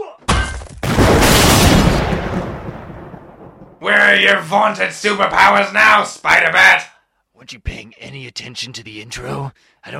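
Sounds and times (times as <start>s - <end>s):
bomb hidden in an economy-sized tub of green beans exploding: 0.8s - 3.8s
speech: 3.8s - 9.9s.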